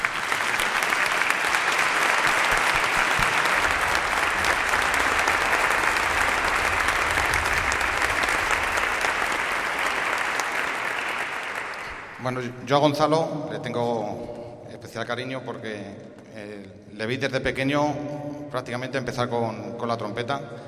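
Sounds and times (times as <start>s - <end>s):
large audience applause: 0.0s - 12.3s
speech: 12.3s - 20.6s.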